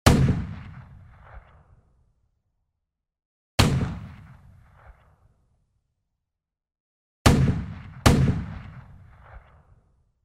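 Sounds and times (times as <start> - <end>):
anti-tank gun firing: 0.0 - 1.6, 3.6 - 5.0, 7.2 - 9.7.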